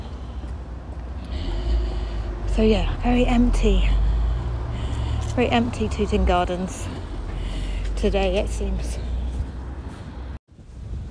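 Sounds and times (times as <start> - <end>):
strong wind blowing: 0.0 - 11.1
speech: 2.6 - 4.0, 5.4 - 7.1, 8.0 - 9.1.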